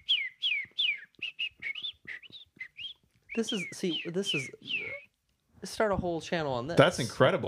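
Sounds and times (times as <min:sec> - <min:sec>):
person whistling bird-like calls: 0:00.0 - 0:05.1
speech: 0:03.4 - 0:04.8, 0:05.6 - 0:07.4.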